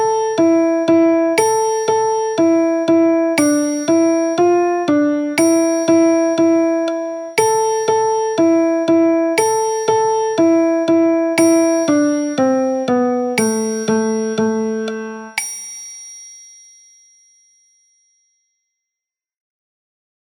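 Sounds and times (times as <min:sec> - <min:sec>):
piano music: 0:00.0 - 0:15.4.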